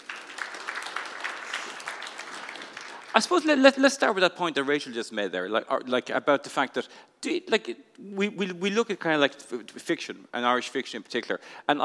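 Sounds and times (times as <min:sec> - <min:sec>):
crowd clapping: 0:00.0 - 0:03.7
speech: 0:03.2 - 0:11.8.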